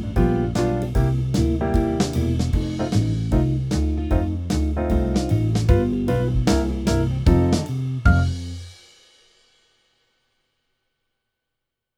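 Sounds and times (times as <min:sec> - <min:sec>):
jazz backing track: 0:00.0 - 0:08.7.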